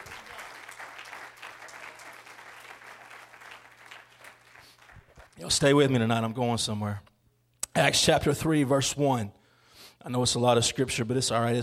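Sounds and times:
audience hand clapping applause: 0.0 - 5.4
speech: 5.4 - 7.1, 7.8 - 9.4, 10.0 - 11.6.

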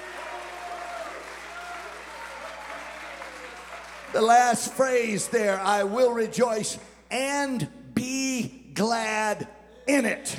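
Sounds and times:
audience clapping: 0.0 - 6.1
speech: 4.1 - 8.2, 8.8 - 10.3.

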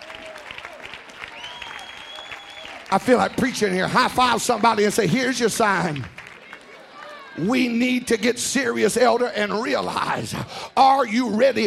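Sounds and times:
church congregation clapping hands in praise: 0.0 - 8.1
speech: 2.9 - 6.2, 7.4 - 11.6.

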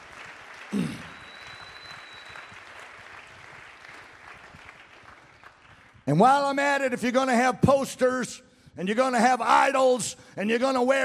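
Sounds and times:
audience clapping hands: 0.0 - 6.2
speech: 6.1 - 11.0.

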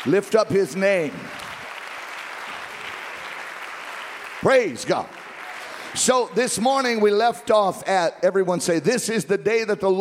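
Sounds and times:
speech: 0.0 - 1.4, 4.4 - 5.2, 5.9 - 9.9
church congregation clapping hands during worship: 0.0 - 7.6.

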